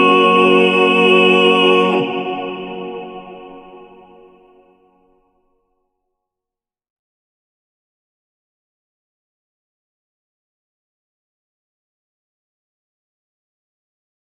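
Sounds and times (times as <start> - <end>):
male vocal ensemble singing: 0.0 - 4.5.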